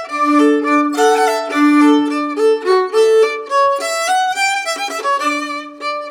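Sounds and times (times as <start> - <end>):
waltz music: 0.1 - 3.8, 5.2 - 5.9.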